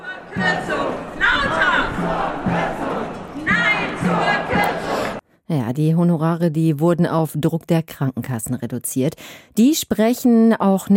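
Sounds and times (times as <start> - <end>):
crowd of protesters shouting and chanting at a rally: 0.0 - 5.2
low drumbeat thumps: 0.3 - 4.8
speech: 5.7 - 10.9.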